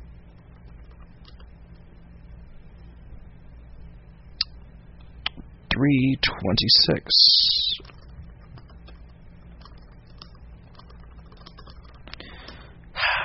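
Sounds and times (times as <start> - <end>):
person speaking: 5.7 - 8.2
typing on a computer keyboard: 7.8 - 12.1.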